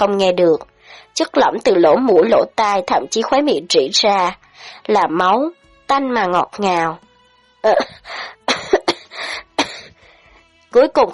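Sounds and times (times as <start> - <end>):
speech: 0.0 - 8.4, 10.7 - 11.1
woman kneeling on the ground coughing violently: 7.8 - 10.0.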